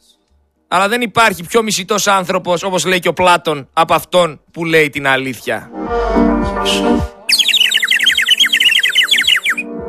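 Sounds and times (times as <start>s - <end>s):
speech: 0.7s - 7.4s
whistle blowing: 7.3s - 9.6s.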